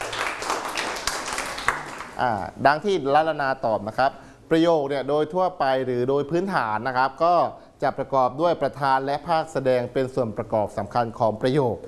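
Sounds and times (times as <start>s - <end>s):
class clapping hands: 0.0s - 2.2s
speech: 2.2s - 11.8s.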